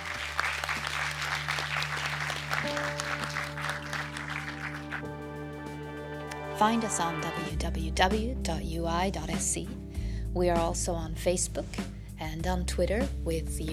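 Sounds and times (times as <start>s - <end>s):
audience applause for panelists: 0.0s - 5.2s
speech: 6.6s - 13.7s.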